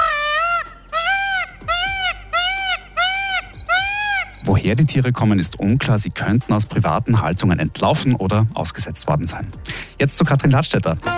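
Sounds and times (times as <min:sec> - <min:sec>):
birds calling loudly in mating season: 0:00.0 - 0:05.1
speech: 0:04.6 - 0:11.1.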